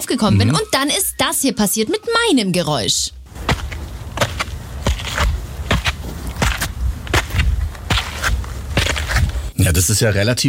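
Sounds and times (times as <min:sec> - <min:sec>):
speech: 0:00.0 - 0:03.4, 0:09.7 - 0:10.4
low rumble: 0:02.2 - 0:09.5
footsteps climbing a stepped hillside path in Heidelberg: 0:03.3 - 0:09.5.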